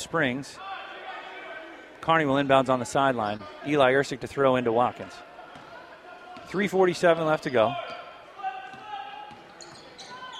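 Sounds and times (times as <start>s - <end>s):
speech: 0.0s - 0.7s, 2.0s - 5.3s, 6.5s - 7.9s
basketball dribbled behind the back during a game: 8.7s - 10.3s.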